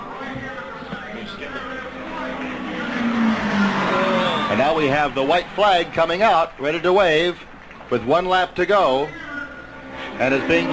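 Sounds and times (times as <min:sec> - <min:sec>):
race car roaring past at the Indianapolis 500: 0:01.8 - 0:06.0
speech: 0:04.6 - 0:09.2, 0:10.2 - 0:10.7.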